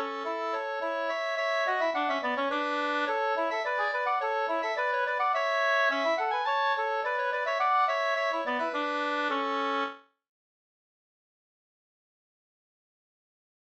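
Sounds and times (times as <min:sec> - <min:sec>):
two-part slangpolska: 0:00.0 - 0:09.6.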